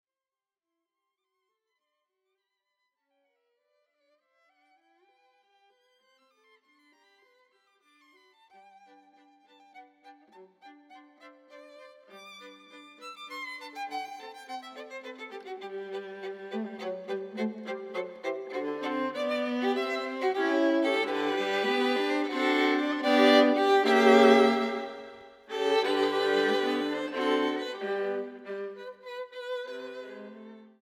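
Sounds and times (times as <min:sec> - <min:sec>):
minuet-tempo music: 0:16.5 - 0:28.6.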